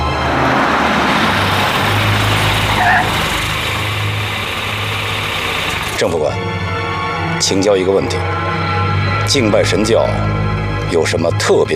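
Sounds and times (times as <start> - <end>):
car engine running: 0.0 - 6.3
speech: 6.0 - 6.6, 7.4 - 8.6, 9.3 - 11.7.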